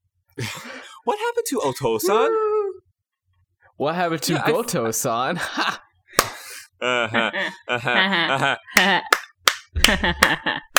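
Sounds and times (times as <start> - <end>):
speech: 0.4 - 2.6, 3.8 - 9.2, 9.8 - 10.7
laughter: 4.3 - 5.8, 6.8 - 9.2, 9.8 - 10.7
hand claps: 6.2 - 6.4, 8.8 - 10.7.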